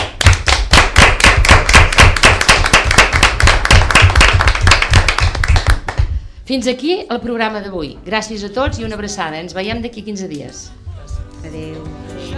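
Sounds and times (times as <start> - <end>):
audience applause: 0.2 - 6.0
speech: 6.5 - 10.8, 11.4 - 12.3.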